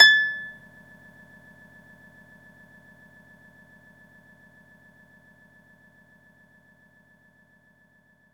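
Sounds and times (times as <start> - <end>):
orchestral harp note A6: 0.0 - 0.5.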